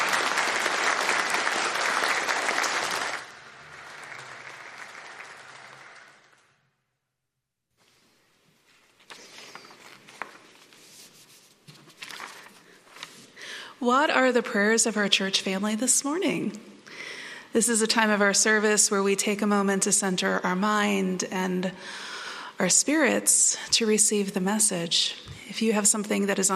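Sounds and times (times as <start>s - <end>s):
church congregation applauding new members: 0.0s - 6.6s
rustling: 7.8s - 13.4s
speech: 13.8s - 16.7s, 17.6s - 26.5s.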